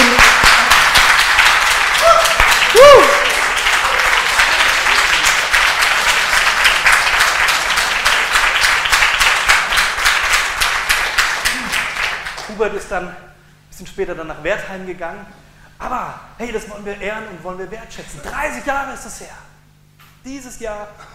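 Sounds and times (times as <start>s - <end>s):
audience applause: 0.0s - 12.6s
speech: 12.6s - 13.2s, 13.8s - 19.5s, 20.2s - 21.1s.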